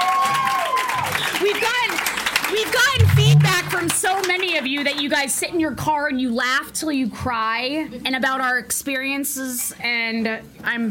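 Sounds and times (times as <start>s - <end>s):
audience applause and cheering: 0.0s - 4.0s
speech: 3.8s - 10.8s.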